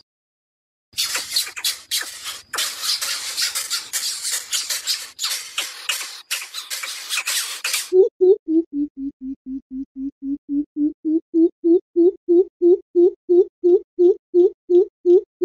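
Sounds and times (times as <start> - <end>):
greater coucal harsh hissing rasps: 1.0 - 8.0
greater coucal low hoots: 8.0 - 15.3.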